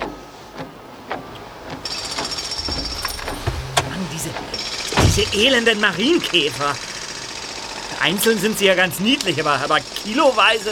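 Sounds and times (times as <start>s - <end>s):
car windshield wipers operating: 0.0s - 5.8s
speech: 5.2s - 6.9s, 8.0s - 10.7s.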